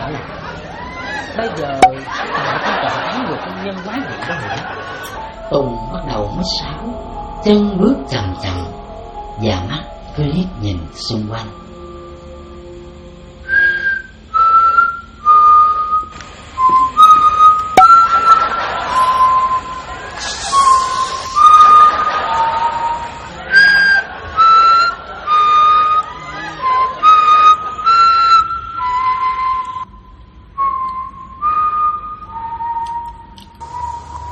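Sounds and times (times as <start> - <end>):
laughter: 0.0 - 5.4, 18.0 - 28.3
speech: 0.1 - 0.4, 1.4 - 8.7, 9.4 - 11.7
person whistling a tune: 13.4 - 34.2.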